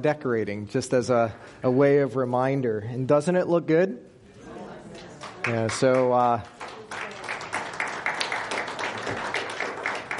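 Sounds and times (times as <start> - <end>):
speech: 0.0 - 4.1, 4.9 - 6.6
church audience applauding: 5.2 - 10.1.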